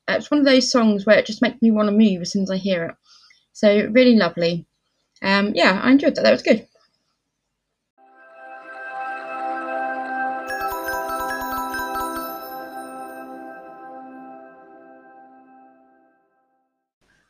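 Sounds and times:
speech: 0.2s - 6.7s
chime jingle: 8.0s - 16.3s.

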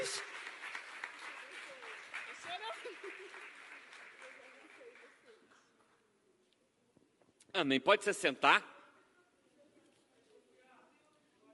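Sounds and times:
crowd applauding: 0.0s - 5.5s
speech: 7.6s - 8.7s.

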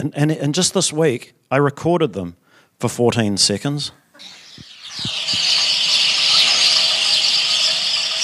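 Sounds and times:
speech: 0.0s - 5.6s
sparrows chirping in trees: 4.2s - 8.2s.

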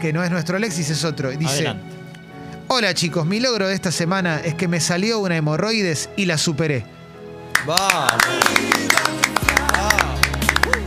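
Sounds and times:
speech: 0.0s - 2.1s, 2.7s - 7.0s, 7.6s - 9.2s
standing ovation applause: 7.5s - 10.8s.

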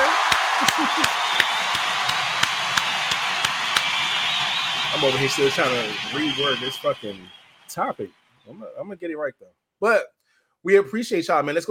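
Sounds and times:
laughter: 0.0s - 2.1s
round of applause: 0.0s - 8.5s
speech: 0.6s - 1.6s, 5.0s - 11.6s.

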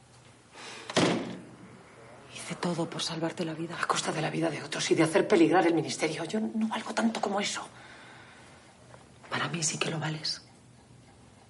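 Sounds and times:
office door closing: 0.9s - 1.6s
speech: 2.5s - 7.9s, 9.5s - 10.5s.

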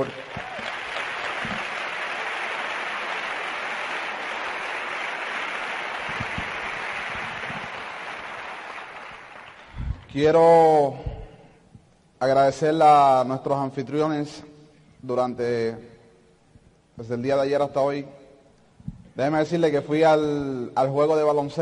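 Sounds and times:
speech: 0.0s - 0.3s, 10.1s - 11.1s, 12.2s - 15.9s, 17.0s - 18.2s, 19.2s - 21.5s
audience applause: 0.0s - 9.7s.

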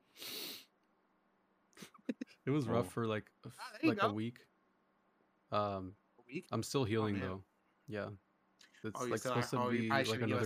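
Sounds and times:
big forceful nasal sniff: 0.1s - 0.7s
speech: 2.4s - 4.5s, 5.5s - 8.2s, 8.8s - 10.4s.

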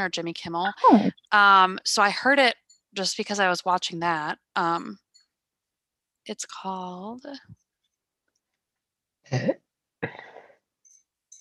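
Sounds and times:
speech: 0.0s - 5.0s, 6.3s - 7.6s, 9.3s - 10.3s
person burping: 9.3s - 10.5s.

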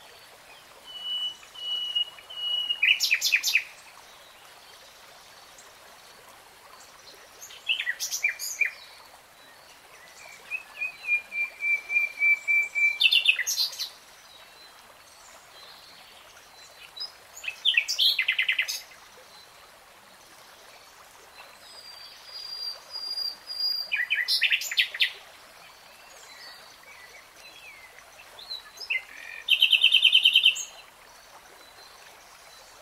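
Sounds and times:
nightingale song: 0.5s - 3.8s, 7.4s - 14.8s, 16.6s - 19.5s, 21.4s - 30.8s.

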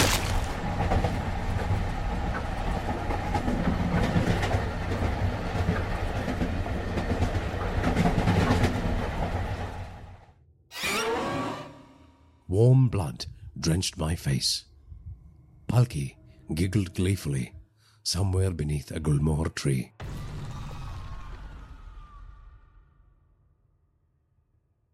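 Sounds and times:
train rumbling along the rails: 0.3s - 10.3s
speech: 12.6s - 14.7s, 15.7s - 20.2s.

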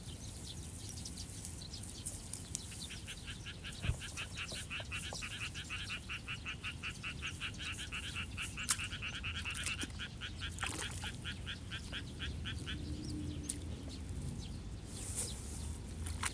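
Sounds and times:
sparrows chattering over rice paddy water: 0.0s - 16.1s
frogs croaking: 3.0s - 13.5s
splashes from pulling seedlings in a flooded nursery bed: 8.6s - 12.0s.

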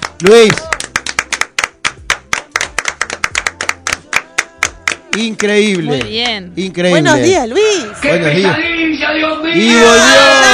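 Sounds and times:
applause: 0.0s - 6.2s
speech: 0.2s - 0.7s, 5.2s - 10.5s.

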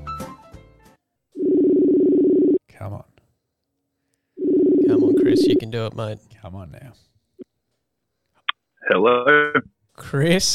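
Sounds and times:
telephone dialing tones: 1.4s - 2.6s, 4.4s - 5.7s
speech: 4.9s - 7.1s, 8.9s - 10.5s.

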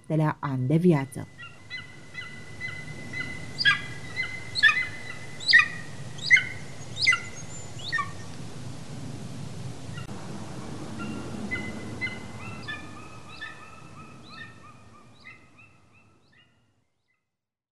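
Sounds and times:
low background rumble: 0.0s - 16.0s
speech: 0.1s - 1.5s
Golden Eagle calls: 0.7s - 8.2s, 11.0s - 16.1s.

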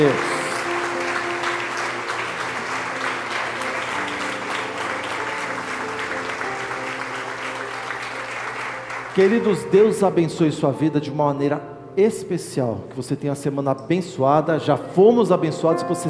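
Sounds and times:
speech: 0.0s - 0.3s, 9.2s - 16.0s
audience applause: 0.0s - 9.7s.

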